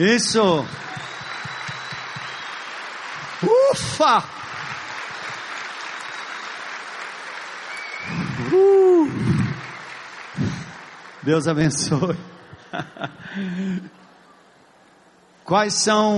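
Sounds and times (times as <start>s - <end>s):
speech: 0.0s - 0.8s, 3.4s - 4.4s, 8.5s - 9.2s, 11.2s - 14.0s, 15.5s - 16.1s
audience applause: 0.2s - 12.2s.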